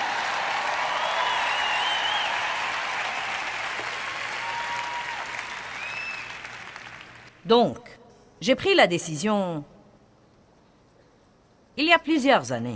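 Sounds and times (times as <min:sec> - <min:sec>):
audience applauding: 0:00.0 - 0:07.3
faint whistles: 0:01.0 - 0:02.4
speech: 0:07.4 - 0:09.7, 0:11.8 - 0:12.7.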